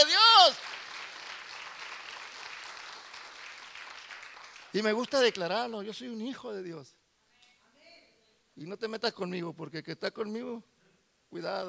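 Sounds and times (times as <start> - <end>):
audience applause: 0.0 - 5.5
speech: 4.7 - 7.0, 8.6 - 10.7, 11.3 - 11.6.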